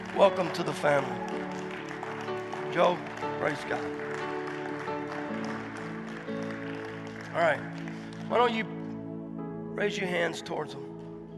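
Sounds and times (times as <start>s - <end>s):
church congregation applause: 0.0s - 9.2s
speech: 0.2s - 1.4s, 2.7s - 4.2s, 7.4s - 8.8s, 9.8s - 10.9s.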